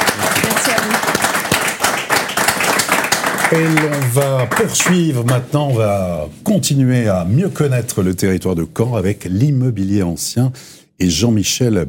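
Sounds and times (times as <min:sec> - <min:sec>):
audience applause: 0:00.0 - 0:05.4
speech: 0:03.5 - 0:11.8.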